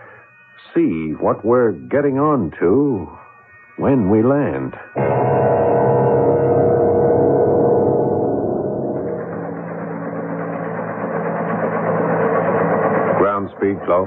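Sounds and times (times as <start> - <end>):
speech: 0.6 - 3.2, 3.8 - 5.5, 13.7 - 14.0
helicopter engine hovering: 5.0 - 14.0.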